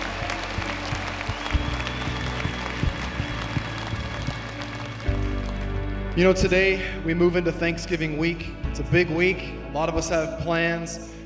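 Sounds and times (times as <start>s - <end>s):
audience hand clapping: 0.0s - 6.2s
speech: 6.2s - 11.2s.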